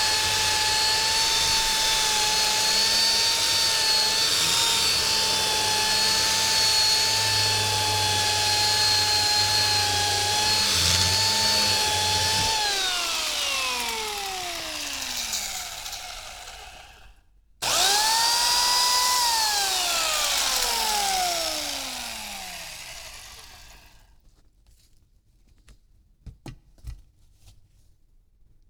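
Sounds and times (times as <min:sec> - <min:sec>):
chainsaw running: 0:00.0 - 0:24.1.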